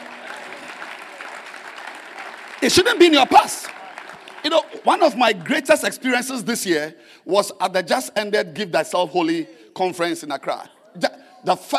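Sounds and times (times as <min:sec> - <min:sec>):
crowd clapping: 0:00.0 - 0:06.5
speech: 0:02.6 - 0:03.8, 0:04.4 - 0:11.7.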